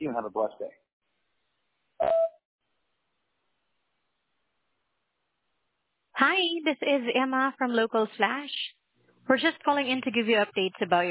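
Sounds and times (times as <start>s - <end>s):
speech: 0.0s - 0.9s, 2.0s - 2.2s, 6.2s - 11.1s
voicemail beep: 2.0s - 2.4s.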